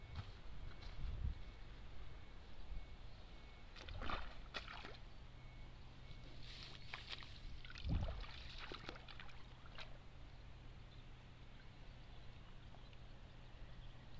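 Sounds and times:
low hum: 0.0 - 14.1
splashes and rustles of rice seedlings pulled from a flooded nursery bed: 3.7 - 5.1, 6.2 - 10.3.

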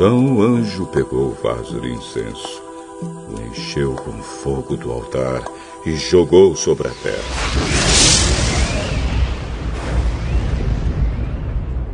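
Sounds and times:
speech: 0.0 - 8.4
thunder rumbling with crackling burst: 7.2 - 11.9.

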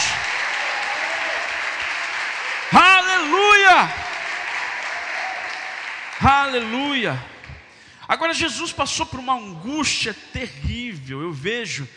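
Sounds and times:
audience applauding: 0.0 - 7.7
speech: 3.8 - 4.0, 6.2 - 7.3, 8.1 - 11.9.

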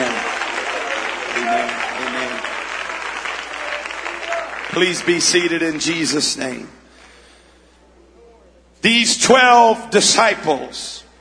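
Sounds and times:
audience clapping and cheering: 0.0 - 6.2
speech: 4.8 - 6.8, 8.8 - 11.0.

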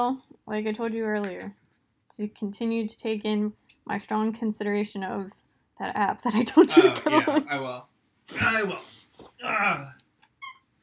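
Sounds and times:
speech: 0.0 - 10.0
laughter: 6.5 - 7.8
dog whining and squeaking: 10.4 - 10.7.

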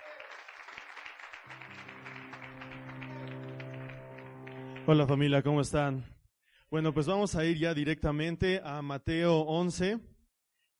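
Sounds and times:
crowd applause: 0.0 - 5.2
low sustained musical chord or hum: 1.5 - 5.6
speech: 4.9 - 10.1.

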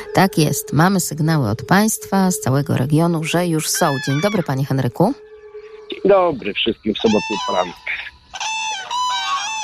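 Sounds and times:
common cranes calling: 0.0 - 5.9, 7.1 - 9.6
speech: 0.2 - 5.2, 6.0 - 8.1.

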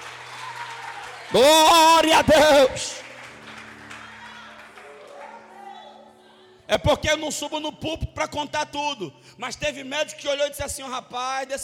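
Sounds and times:
audience applause: 0.0 - 5.9
speech: 1.3 - 3.0, 6.7 - 11.6.

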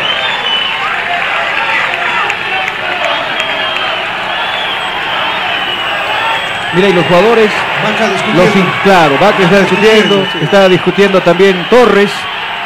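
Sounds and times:
football fans roaring in a stadium: 0.0 - 12.6
speech: 6.8 - 12.3.

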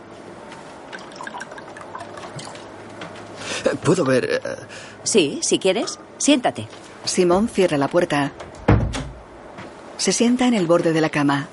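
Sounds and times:
drink pouring into a glass: 0.9 - 2.7
speech: 3.8 - 8.5, 10.0 - 11.5.

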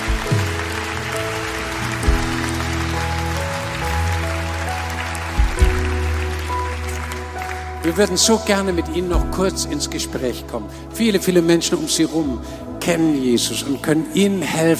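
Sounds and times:
crowd applause: 0.0 - 9.2
speech: 7.9 - 14.7.

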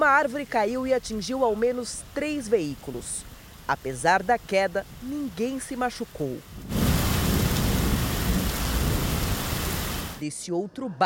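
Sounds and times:
speech: 0.0 - 6.8, 10.2 - 11.0
heavy rain: 0.0 - 10.2
deep rumbling thunder: 6.5 - 10.2.

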